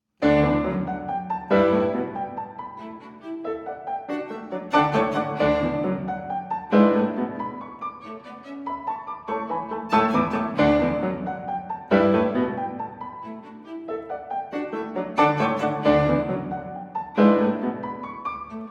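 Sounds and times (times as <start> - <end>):
trio playing a scherzo: 0.2 - 2.5, 4.3 - 7.5, 9.4 - 12.8, 14.6 - 18.0.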